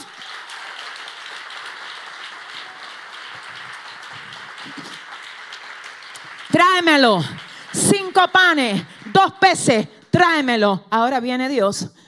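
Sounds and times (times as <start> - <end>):
audience applause: 0.0 - 9.4
speech: 4.6 - 4.9, 6.5 - 7.4, 8.2 - 12.0.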